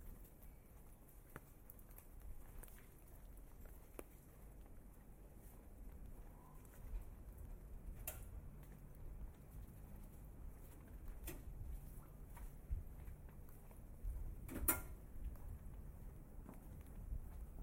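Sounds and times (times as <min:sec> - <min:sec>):
traffic rumble in the streets of Tokyo, Japan: 0:00.0 - 0:17.6
wind in Tokyo streets: 0:00.0 - 0:17.6.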